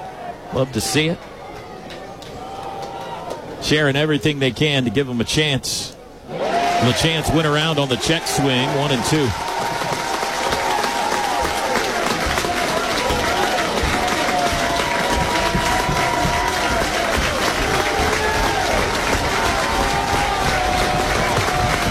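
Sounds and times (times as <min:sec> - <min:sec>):
baseball stadium crowd cheering: 0:00.0 - 0:05.2, 0:06.2 - 0:21.8
speech: 0:00.5 - 0:01.3, 0:03.6 - 0:09.4
crowd clapping: 0:01.5 - 0:03.4, 0:06.8 - 0:21.8
scattered shouts: 0:06.3 - 0:21.8.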